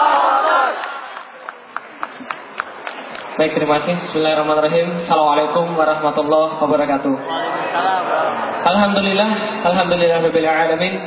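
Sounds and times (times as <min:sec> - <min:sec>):
crowd shouting the takbir in unison at a religious lecture gathering: 0:00.0 - 0:01.1, 0:07.2 - 0:08.6
speech: 0:03.4 - 0:11.0.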